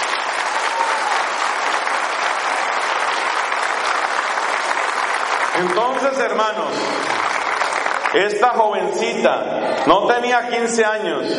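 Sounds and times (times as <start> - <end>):
audience applause: 0.0 - 8.5
speech: 5.6 - 7.3, 8.1 - 11.3.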